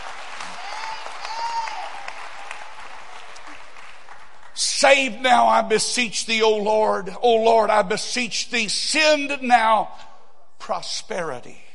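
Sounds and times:
audience clapping hands: 0.0s - 5.1s
speech: 4.6s - 10.1s, 10.7s - 11.6s.

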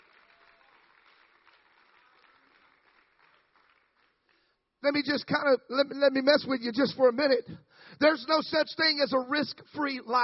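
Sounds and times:
audience clapping hands: 0.0s - 5.0s
speech: 4.8s - 10.2s.

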